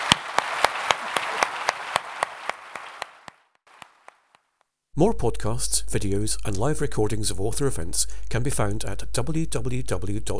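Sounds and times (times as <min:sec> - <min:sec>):
audience applause: 0:00.0 - 0:04.3
speech: 0:05.0 - 0:10.3.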